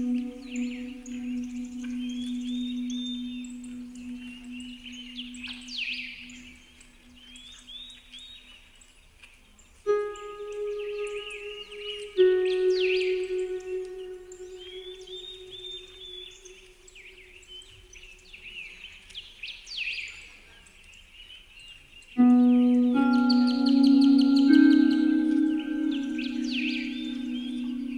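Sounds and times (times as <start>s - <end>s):
relaxing spa music on Celtic harp: 0.0s - 6.8s, 9.9s - 16.8s, 22.2s - 27.9s
birds: 0.0s - 27.9s.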